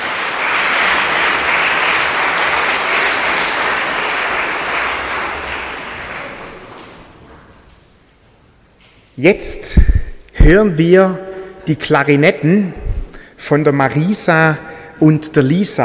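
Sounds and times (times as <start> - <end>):
audience applause: 0.0 - 7.4
speech: 9.2 - 12.8, 13.4 - 15.8.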